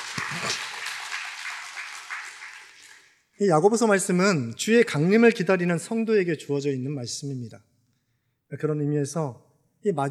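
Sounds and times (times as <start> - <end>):
crowd applauding for teachers: 0.0 - 3.2
speech: 3.4 - 7.7, 8.5 - 10.1.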